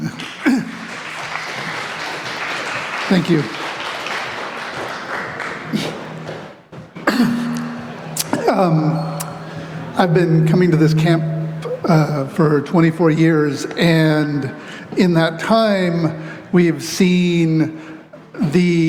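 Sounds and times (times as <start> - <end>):
laughter: 0.0 - 6.4, 7.0 - 18.8
audience applause: 0.0 - 13.1
speech: 3.1 - 3.6, 8.6 - 9.1, 10.0 - 18.8.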